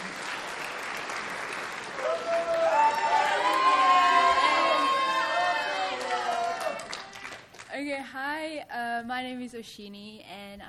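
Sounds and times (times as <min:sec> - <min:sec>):
audience applause: 0:00.0 - 0:07.7
speech: 0:08.6 - 0:10.6.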